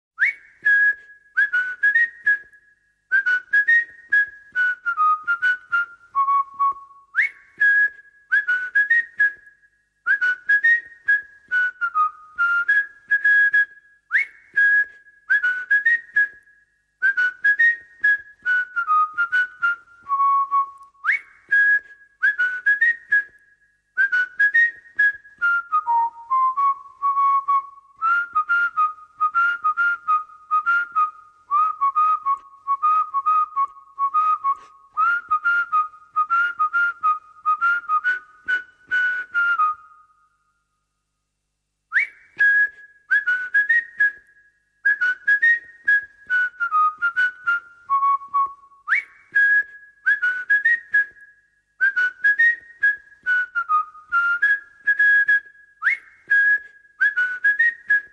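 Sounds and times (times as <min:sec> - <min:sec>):
whistle: 0:00.2 - 0:40.9, 0:41.9 - 0:58.1.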